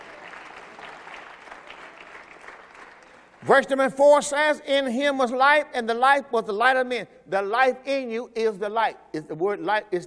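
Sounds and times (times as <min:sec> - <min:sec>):
audience clapping: 0:00.0 - 0:03.6
speech: 0:03.4 - 0:10.0.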